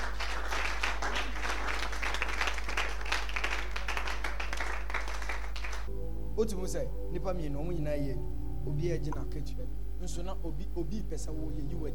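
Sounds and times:
audience clapping hands: 0:00.0 - 0:05.9
speech: 0:06.4 - 0:11.9.

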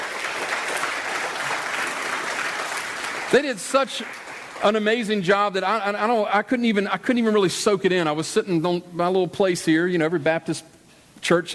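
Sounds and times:
audience applause: 0:00.0 - 0:04.9
speech: 0:03.3 - 0:11.5.

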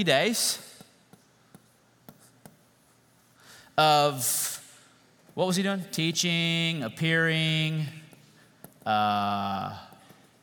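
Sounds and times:
speech: 0:00.0 - 0:00.7, 0:03.8 - 0:04.5, 0:05.4 - 0:08.0, 0:08.8 - 0:09.9
pen or marker taps drawing a timeline: 0:00.7 - 0:02.7.

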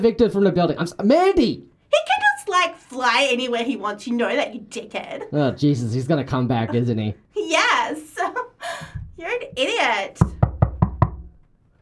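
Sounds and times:
speech: 0:00.0 - 0:10.4
knocking on a door: 0:10.2 - 0:11.4.

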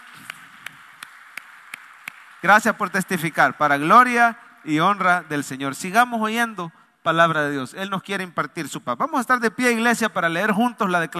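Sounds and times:
sharp claps: 0:00.0 - 0:05.2
speech: 0:02.4 - 0:11.1.

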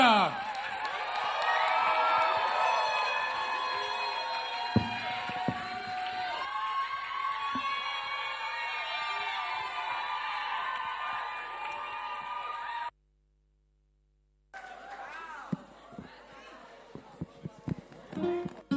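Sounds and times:
audience applause and cheering at a church gathering: 0:00.0 - 0:12.9, 0:14.6 - 0:18.6
sharp knocks: 0:04.8 - 0:06.2.

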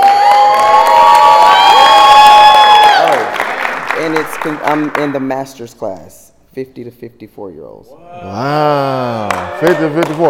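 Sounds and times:
crowd cheering for a woman powerlifter's deadlift world record: 0:00.0 - 0:04.0
speech: 0:04.4 - 0:10.2.

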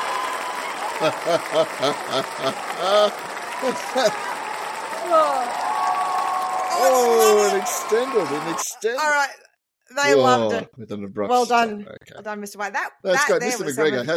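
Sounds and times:
crowd applause: 0:00.0 - 0:09.1
laughter: 0:00.8 - 0:04.4, 0:06.7 - 0:09.0, 0:10.1 - 0:11.1, 0:13.1 - 0:14.1
speech: 0:01.0 - 0:04.3, 0:05.0 - 0:05.6, 0:06.7 - 0:14.1.

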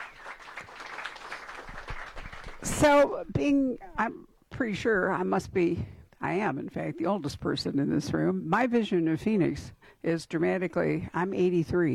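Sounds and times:
audience applause: 0:00.0 - 0:02.8
speech: 0:02.6 - 0:11.9.

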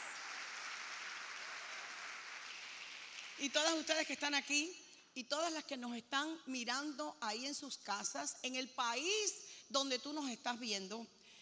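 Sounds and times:
audience applause: 0:00.0 - 0:03.4
speech: 0:03.4 - 0:11.2.

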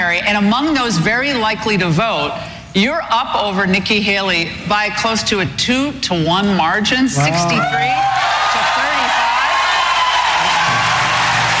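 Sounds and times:
speech: 0:00.1 - 0:08.4
large crowd cheering and shouting: 0:07.2 - 0:11.5
whoops: 0:07.6 - 0:11.5.

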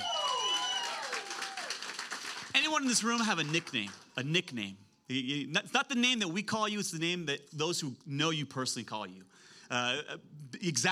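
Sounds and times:
audience applause: 0:00.0 - 0:04.0
speech: 0:02.7 - 0:10.9.

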